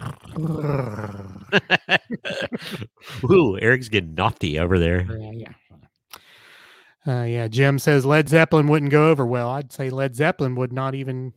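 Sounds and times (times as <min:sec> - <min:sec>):
person imitating a cat's purr: 0:00.0 - 0:01.6
speech: 0:00.4 - 0:05.6, 0:07.0 - 0:11.3
laughter: 0:01.4 - 0:03.5.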